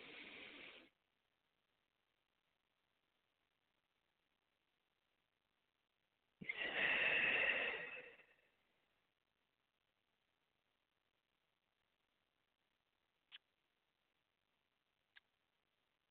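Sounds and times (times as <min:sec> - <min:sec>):
breathing during a guided prayer meditation: 0:00.0 - 0:00.9, 0:06.4 - 0:08.5.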